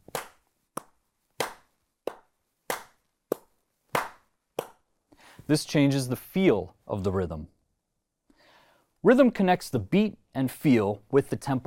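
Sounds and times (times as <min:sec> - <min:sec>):
rhythmic hand clapping with accented beats: 0:00.0 - 0:04.8
speech: 0:05.5 - 0:07.6, 0:09.0 - 0:11.6.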